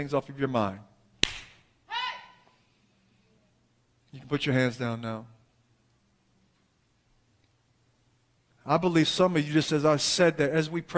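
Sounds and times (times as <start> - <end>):
speech: 0.0 - 0.9, 4.1 - 5.3, 8.7 - 10.9
single hand clap: 1.2 - 1.6.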